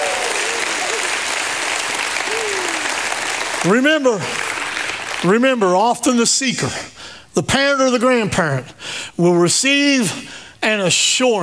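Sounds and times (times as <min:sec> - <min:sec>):
audience shouting praise: 0:00.0 - 0:05.2
audience hand clapping: 0:00.0 - 0:05.8
speech: 0:03.6 - 0:04.5, 0:05.2 - 0:11.4.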